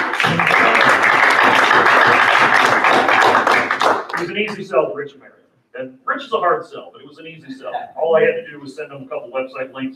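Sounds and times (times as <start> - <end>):
audience applause: 0.0 - 4.3
speech: 4.2 - 9.9.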